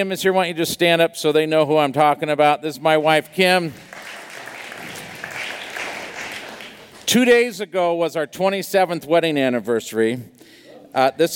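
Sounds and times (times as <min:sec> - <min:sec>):
speech: 0:00.0 - 0:03.9, 0:07.1 - 0:11.3
audience applauding: 0:03.8 - 0:07.2.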